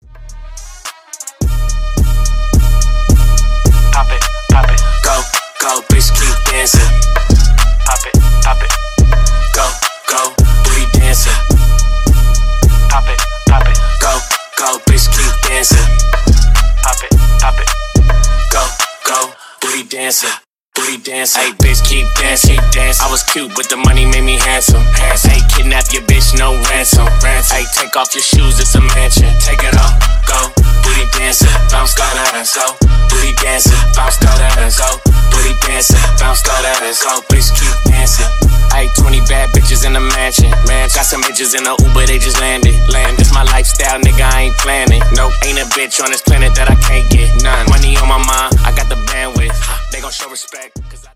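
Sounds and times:
breakbeat at 107 BPM: 0.2 - 19.2, 21.6 - 50.8.

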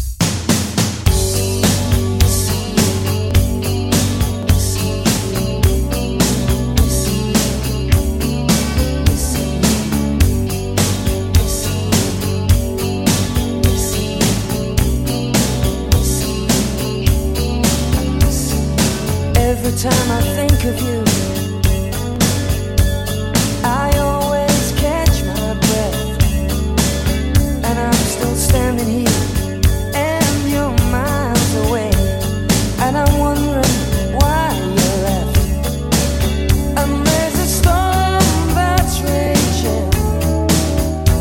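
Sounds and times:
1980s pop rock music: 0.2 - 41.2.

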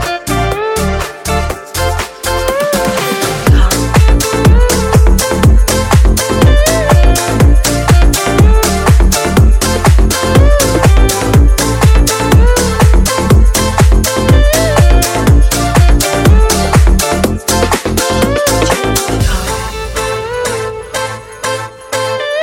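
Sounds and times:
funk remix music at 126 bpm: 0.0 - 22.4.

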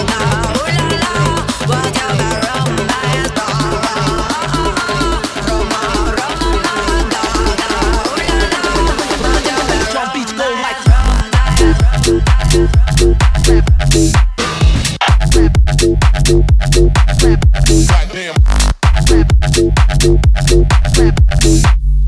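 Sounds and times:
bass house banger at 126 BPM: 0.0 - 22.0.

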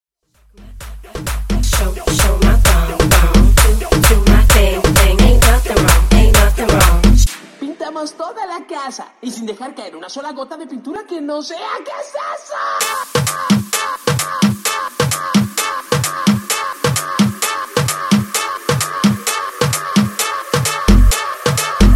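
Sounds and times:
guaracha house music at 130 BPM: 0.4 - 8.2, 12.8 - 21.9.

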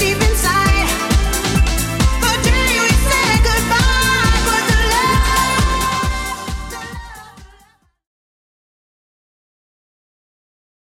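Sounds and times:
electronic dance track: 0.0 - 7.8.

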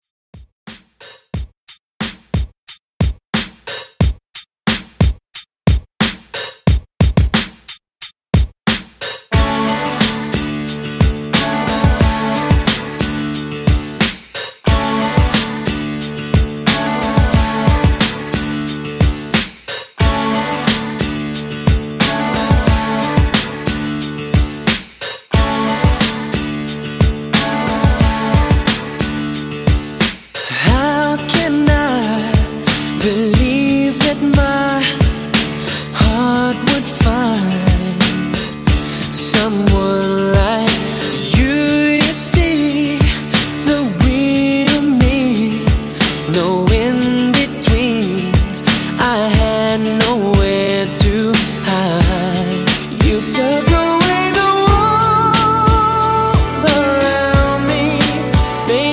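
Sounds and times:
pop drum beat at 90 BPM: 0.4 - 58.9.

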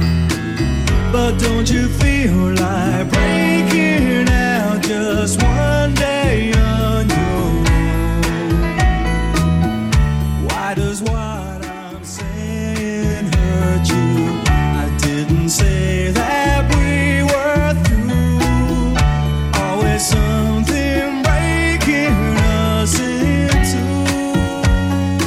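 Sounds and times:
80s style music loop at 106 bpm: 0.0 - 25.2.

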